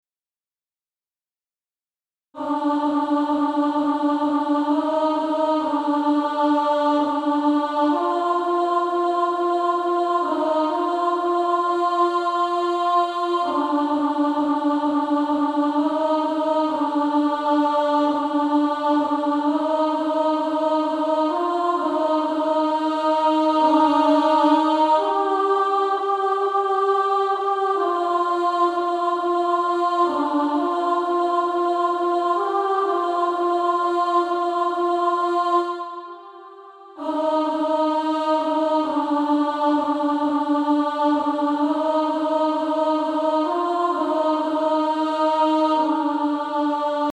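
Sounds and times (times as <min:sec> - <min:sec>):
female choir alto part singing: 0:02.4 - 0:47.1.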